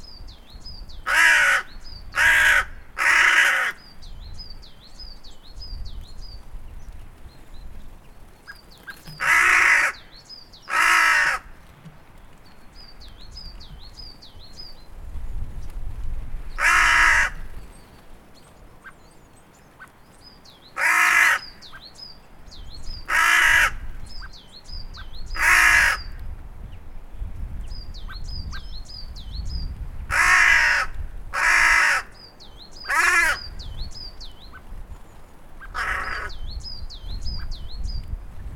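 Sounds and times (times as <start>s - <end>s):
hooded crow calling: 1.0s - 4.0s, 9.0s - 11.7s, 16.6s - 17.6s, 20.7s - 21.9s, 23.0s - 24.0s, 25.3s - 26.2s, 30.1s - 32.2s, 32.8s - 33.7s, 35.6s - 36.5s.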